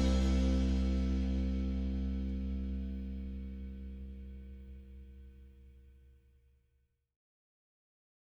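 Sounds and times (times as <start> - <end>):
ukulele in C: 0.0 - 3.1.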